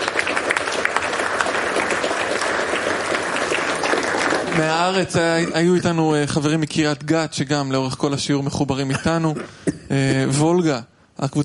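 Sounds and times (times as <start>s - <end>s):
audience applause: 0.0s - 6.2s
speech: 4.6s - 11.4s.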